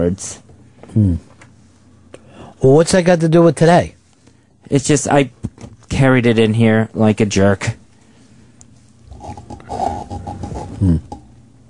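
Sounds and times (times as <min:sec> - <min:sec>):
speech: 0:00.0 - 0:01.3, 0:02.6 - 0:04.0, 0:04.6 - 0:07.8, 0:10.8 - 0:11.1
creaking squeaking room furniture: 0:09.1 - 0:11.3.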